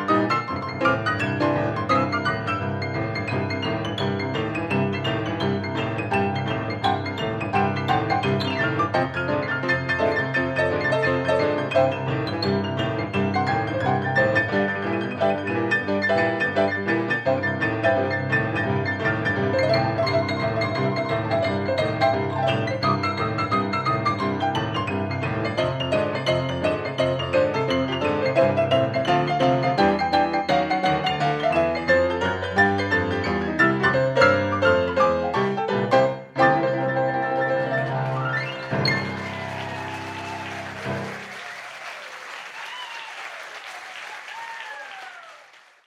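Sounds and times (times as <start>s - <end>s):
boogie piano playing at a concert in a cultural centre: 0.0s - 41.4s.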